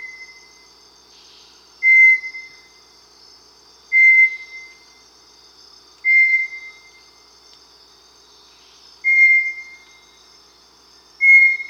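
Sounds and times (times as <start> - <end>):
faint high insect hum: 0.0 - 11.6
Bartlett's tinamou whistled song: 1.8 - 2.7, 3.9 - 4.8, 6.0 - 7.0, 9.0 - 10.0, 11.2 - 11.6.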